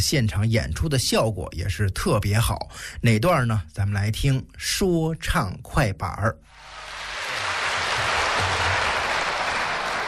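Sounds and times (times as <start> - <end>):
speech: 0.0 - 6.8
audience applause: 6.6 - 10.0.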